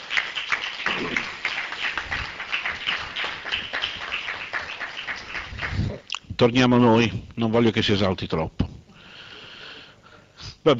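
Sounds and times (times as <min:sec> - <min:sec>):
audience applause: 0:00.0 - 0:06.0
speech: 0:06.4 - 0:08.6.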